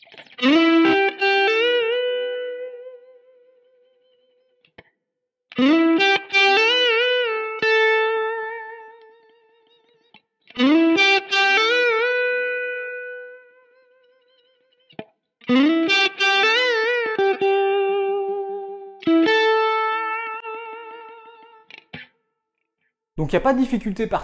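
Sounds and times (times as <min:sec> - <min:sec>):
slightly crunchy clean electric guitar playing chords and runs: 0:00.0 - 0:04.9, 0:05.5 - 0:22.2
speech: 0:23.2 - 0:24.2.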